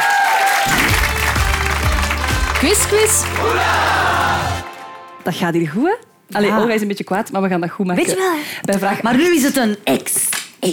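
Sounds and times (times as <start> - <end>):
audience applause: 0.0 - 5.0
speech: 2.6 - 4.1, 5.2 - 10.7.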